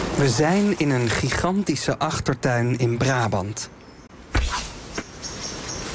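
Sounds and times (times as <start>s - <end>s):
speech: 0.2s - 3.8s
arrow shot from a wooden bow: 4.3s - 5.1s.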